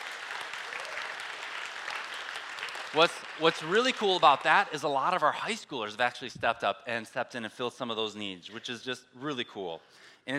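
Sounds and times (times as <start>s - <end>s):
crowd applause: 0.0s - 5.2s
speech: 2.9s - 10.3s.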